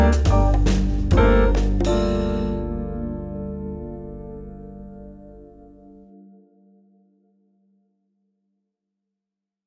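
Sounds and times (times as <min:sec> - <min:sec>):
smooth jazz combo soft lounge music: 0:00.0 - 0:05.6.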